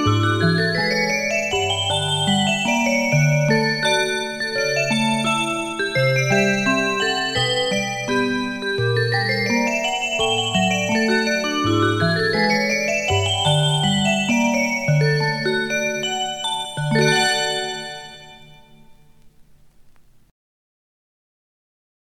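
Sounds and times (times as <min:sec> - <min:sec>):
bells: 0:00.0 - 0:19.6.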